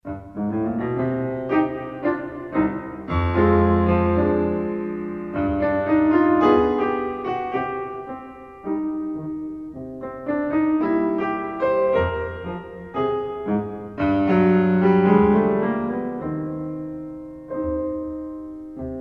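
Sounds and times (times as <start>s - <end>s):
tango in C minor: 0.2s - 18.9s.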